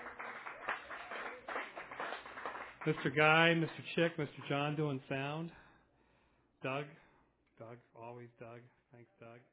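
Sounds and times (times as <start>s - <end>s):
audience applause at a live event: 0.0s - 3.8s
speech: 2.8s - 5.6s, 6.6s - 7.0s, 7.6s - 9.5s.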